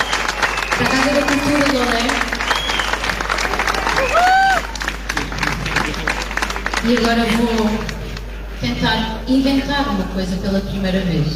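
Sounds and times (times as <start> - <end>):
cheers and whistles: 0.0 - 4.8
audience applause: 0.0 - 8.3
speech: 0.8 - 2.4, 6.8 - 7.9, 8.6 - 11.3.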